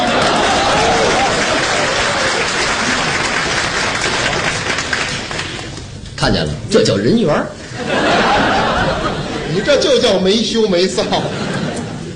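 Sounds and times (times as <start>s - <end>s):
laughter: 0.0s - 4.5s, 7.6s - 12.1s
audience applause: 0.0s - 6.0s
speech: 6.2s - 8.2s, 9.6s - 11.5s.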